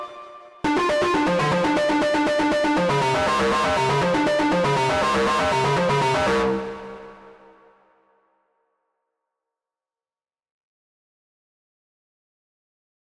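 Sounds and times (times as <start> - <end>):
String Studio VS3 synthesized strings: 0.6 - 7.5.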